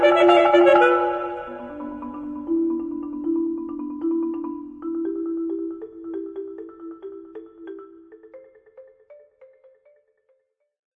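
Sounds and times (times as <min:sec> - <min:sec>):
alto saxophone: 0:00.0 - 0:01.8
marimba: 0:00.0 - 0:10.6.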